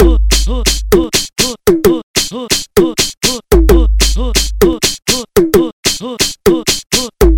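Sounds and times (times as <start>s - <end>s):
music beat: 0.0s - 7.3s.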